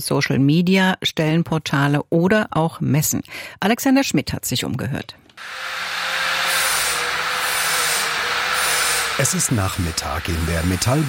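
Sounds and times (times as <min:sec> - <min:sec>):
speech: 0:00.0 - 0:05.9, 0:09.2 - 0:11.0
grinding metal stair railings: 0:05.4 - 0:11.0.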